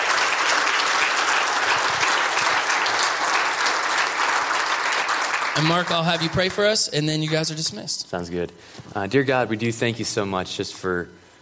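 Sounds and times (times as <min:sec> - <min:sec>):
audience applause: 0:00.0 - 0:07.6
speech: 0:05.6 - 0:11.2.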